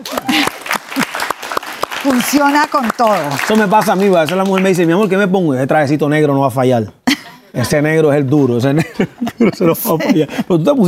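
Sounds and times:
voices and whoops: 0.0s - 0.7s
audience clapping: 0.0s - 5.4s
speech: 2.0s - 10.8s
laughter: 8.7s - 10.8s.

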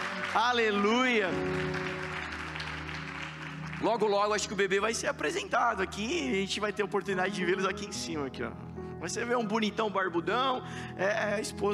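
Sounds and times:
audience applauding: 0.0s - 5.4s
speech: 0.4s - 1.9s, 3.8s - 11.7s.

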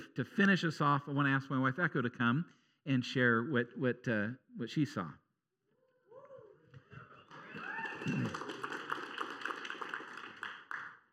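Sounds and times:
speech: 0.2s - 5.2s, 8.0s - 8.4s
crowd applause: 7.2s - 11.0s
crowd cheers and whoops: 7.3s - 8.7s.

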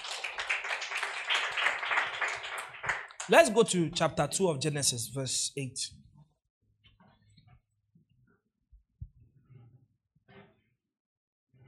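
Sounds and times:
group clapping: 0.0s - 4.2s
speech: 3.3s - 6.0s.

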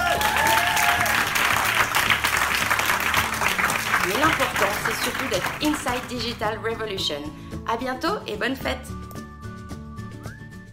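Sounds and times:
students applauding: 0.0s - 6.2s
speech: 5.1s - 9.0s.

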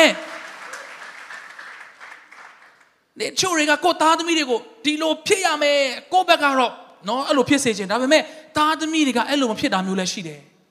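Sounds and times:
church congregation clapping for Jesus during a sermon: 0.0s - 3.0s
speech: 3.2s - 10.5s.

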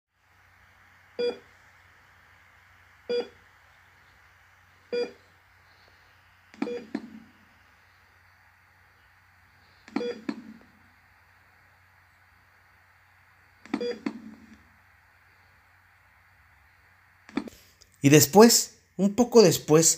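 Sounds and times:
faint constant hum: 0.2s - 19.9s
heart monitor beeping: 1.1s - 1.5s, 3.0s - 3.5s, 4.9s - 5.9s, 6.5s - 8.4s, 9.2s - 11.0s, 13.0s - 14.7s
speech: 1.2s - 1.5s, 3.1s - 3.3s, 18.0s - 19.9s.

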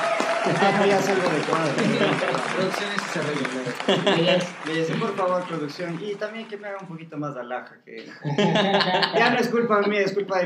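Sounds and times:
audience applause: 0.0s - 7.0s
laughter: 0.4s - 6.2s, 8.0s - 10.0s
speech: 0.4s - 10.4s.

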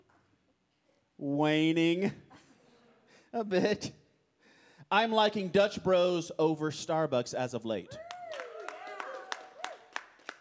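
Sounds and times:
speech: 1.2s - 2.2s, 3.3s - 4.0s, 4.9s - 8.0s
audience members clapping: 8.0s - 10.3s.

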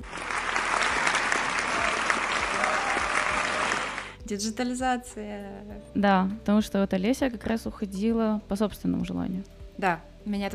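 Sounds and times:
crowd applause: 0.0s - 4.2s
speech: 4.3s - 10.5s.

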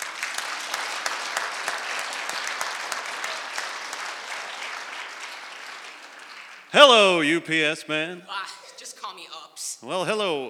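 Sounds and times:
audience applauding: 0.0s - 7.8s
speech: 6.7s - 8.6s, 9.2s - 10.4s.

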